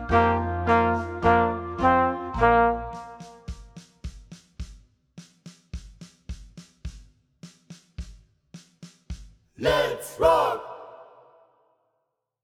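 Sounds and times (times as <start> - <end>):
rock horn: 0.0 - 3.7.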